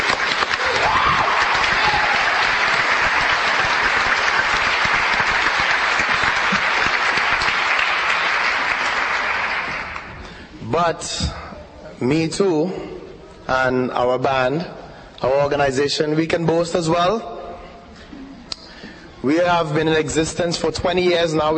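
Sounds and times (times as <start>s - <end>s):
audience round of applause: 0.0s - 10.3s
speech: 10.8s - 11.4s, 12.0s - 17.4s, 19.2s - 21.5s.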